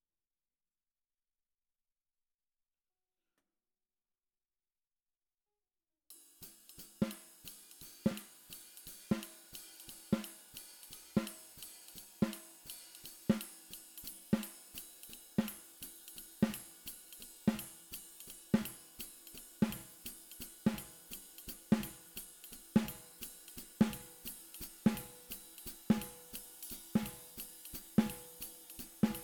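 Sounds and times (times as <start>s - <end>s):
snare drum: 6.2s - 29.2s.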